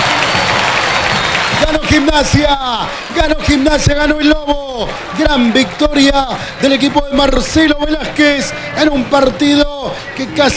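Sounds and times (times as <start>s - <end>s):
stadium crowd clapping: 0.0s - 8.2s
stadium crowd cheering: 0.0s - 10.5s
speech: 1.7s - 10.5s.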